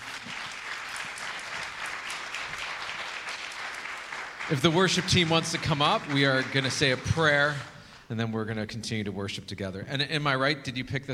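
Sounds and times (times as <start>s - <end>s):
church congregation applause thanking a couple: 0.0s - 7.9s
speech: 4.5s - 11.1s.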